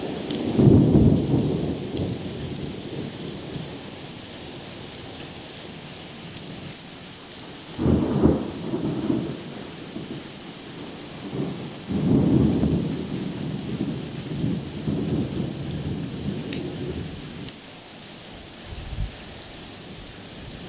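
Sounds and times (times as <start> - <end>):
thunderstorm: 0.0 - 3.9, 7.7 - 17.5, 18.7 - 19.2.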